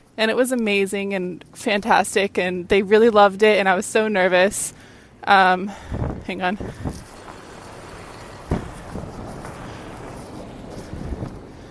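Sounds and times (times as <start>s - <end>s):
speech: 0.2s - 7.0s
loud truck passing: 5.7s - 11.7s
sharp thump: 8.4s - 9.1s.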